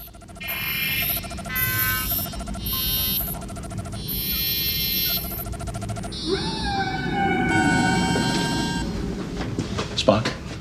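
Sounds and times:
humpback whale song: 0.0s - 9.4s
speech: 10.1s - 10.4s.

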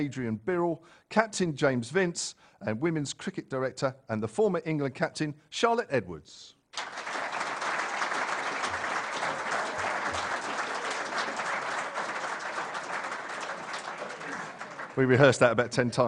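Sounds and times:
speech: 0.0s - 7.0s, 15.0s - 16.0s
studio audience applause: 6.8s - 15.5s.

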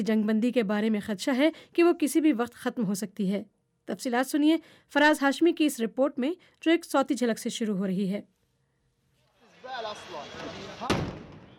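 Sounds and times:
speech: 0.0s - 8.4s
warning explosion in Gaza before Israeli airstrike: 10.2s - 11.5s.

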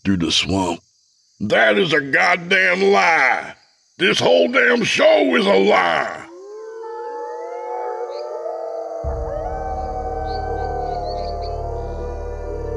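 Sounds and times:
speech: 0.0s - 6.2s
chorus of howls from the surrounding forest: 5.8s - 12.7s
deep low rumble: 9.0s - 12.7s.

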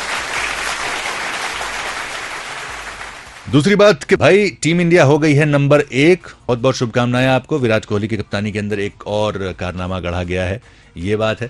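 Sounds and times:
loud applause from a crowd: 0.0s - 3.5s
speech: 3.5s - 11.4s.

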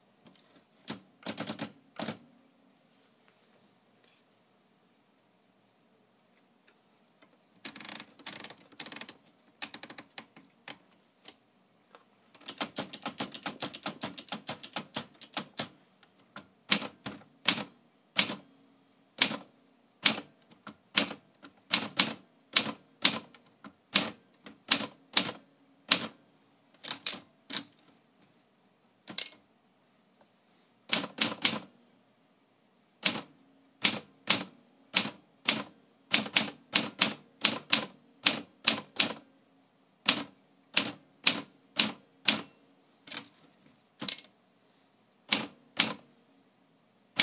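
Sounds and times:
typing: 0.9s - 2.2s, 7.6s - 10.9s, 12.4s - 18.4s, 19.2s - 26.2s, 26.8s - 27.9s, 29.1s - 29.4s, 30.9s - 31.7s, 33.0s - 39.2s, 40.1s - 42.5s, 44.0s - 44.3s, 45.3s - 46.1s.

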